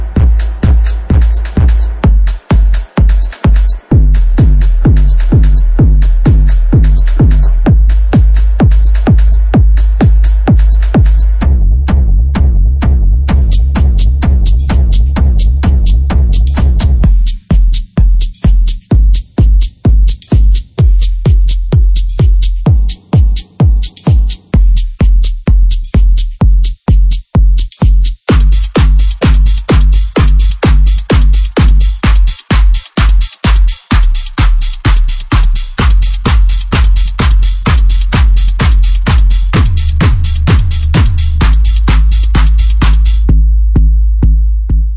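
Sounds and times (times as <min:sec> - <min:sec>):
techno kick drums: 0:00.0 - 0:44.9.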